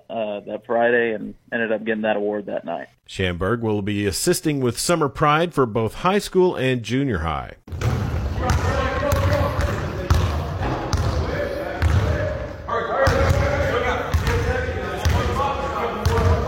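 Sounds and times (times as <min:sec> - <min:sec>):
speech: 0:00.1 - 0:07.8
basketballs bouncing on a hard floor at Weatherford High School skills camp: 0:07.7 - 0:12.3, 0:13.0 - 0:15.3, 0:16.0 - 0:16.4.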